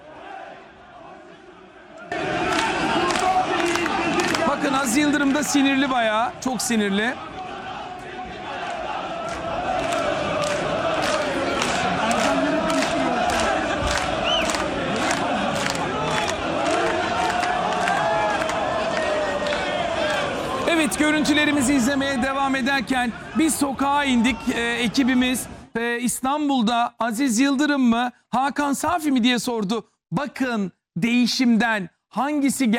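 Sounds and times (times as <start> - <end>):
football fans shouting angry protest chants: 0.0 - 25.6
speech: 4.7 - 7.3, 21.0 - 32.7.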